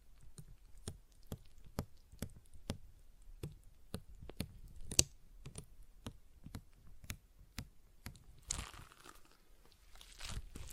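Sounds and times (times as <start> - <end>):
stress ball squeezed with clicks and soft thumps: 0.0 - 10.7
crinkly rustling hiss: 8.4 - 10.7.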